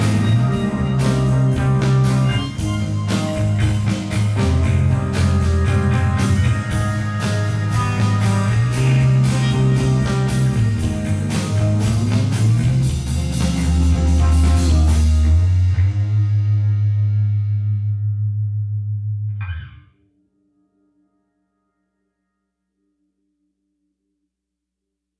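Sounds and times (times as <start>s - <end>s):
drums: 0.0s - 18.0s
melodic bass: 0.0s - 19.8s
emo guitars: 0.0s - 20.1s.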